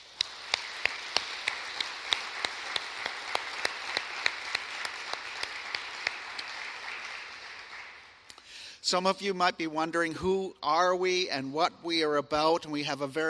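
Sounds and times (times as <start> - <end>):
church congregation clapping to welcome newcomers: 0.0 - 8.7
speech: 8.9 - 13.2.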